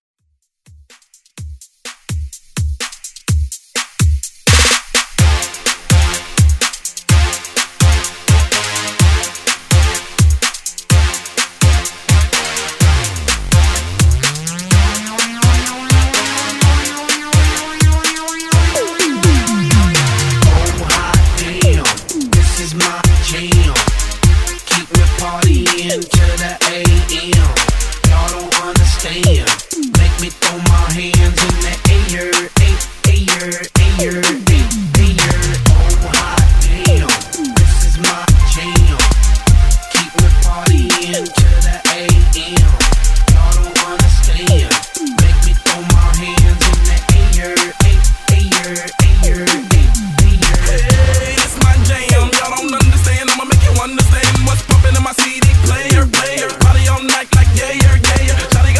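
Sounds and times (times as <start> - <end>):
retro drum beat: 0.7 - 58.7.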